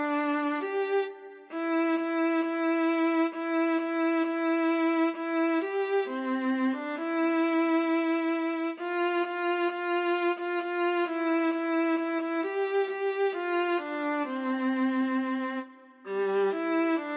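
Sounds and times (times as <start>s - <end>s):
solo Christmas song: 0.0s - 17.1s.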